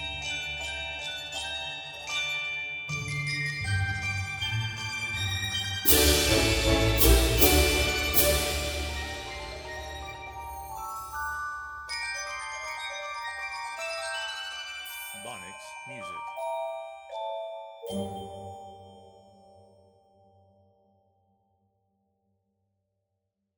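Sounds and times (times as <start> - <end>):
orchestra: 0.0 - 14.2.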